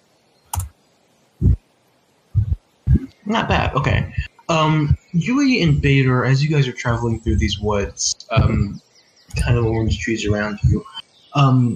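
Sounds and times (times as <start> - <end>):
keystrokes on a computer keyboard: 0.5 - 0.7
speech: 3.3 - 11.7.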